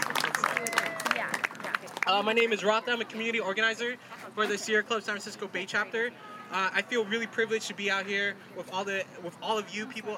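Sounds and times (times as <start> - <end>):
crowd applauding at outdoor protest march: 0.0 - 2.2
speech: 2.1 - 10.1.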